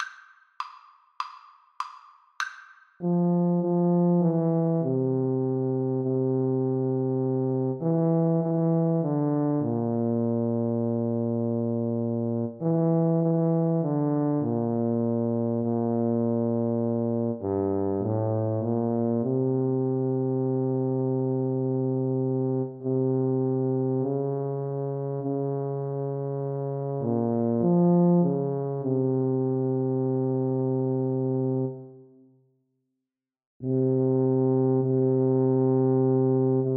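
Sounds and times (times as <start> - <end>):
tuba duet: 3.0 - 32.2, 33.6 - 36.7.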